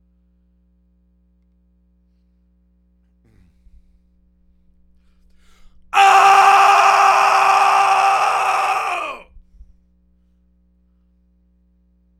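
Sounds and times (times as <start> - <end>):
vocals: 6.0 - 9.3.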